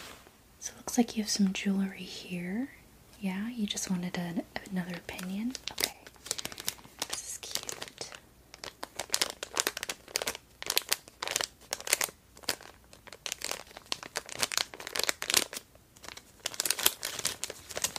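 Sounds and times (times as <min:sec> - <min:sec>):
speech: 0:01.0 - 0:05.9
plastic packaging crinkling: 0:04.6 - 0:17.9.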